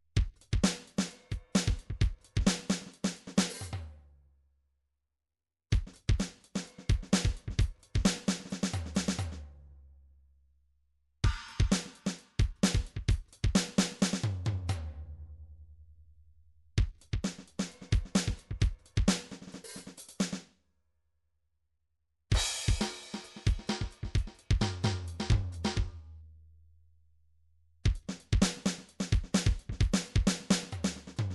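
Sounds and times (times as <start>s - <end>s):
MIDI drum pattern: 0.2s - 3.8s, 5.7s - 9.4s, 11.2s - 14.9s, 16.8s - 20.4s, 22.3s - 26.2s, 27.8s - 31.3s.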